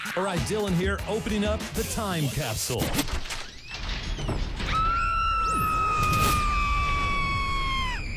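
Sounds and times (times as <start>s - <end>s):
speech: 0.2s - 3.3s
long scream sound effect: 4.7s - 8.1s
swooping whines: 4.7s - 8.1s.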